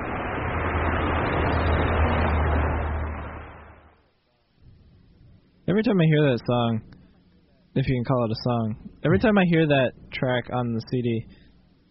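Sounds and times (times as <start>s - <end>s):
bus arriving: 0.0s - 4.0s
speech: 5.8s - 7.0s, 7.8s - 11.4s.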